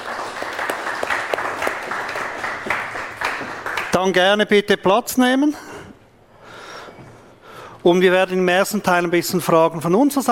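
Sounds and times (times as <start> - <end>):
audience applause: 0.0 - 4.2
speech: 4.0 - 5.7, 7.8 - 10.2.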